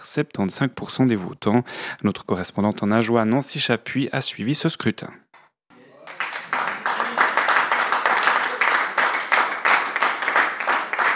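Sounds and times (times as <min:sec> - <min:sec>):
speech: 0:00.2 - 0:05.3
crowd applause: 0:05.8 - 0:11.1.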